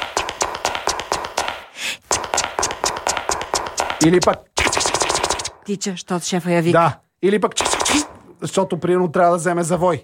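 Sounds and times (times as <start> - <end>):
high heels clicking along an office corridor: 0.0 - 4.5
speech: 4.0 - 4.5, 5.7 - 10.0.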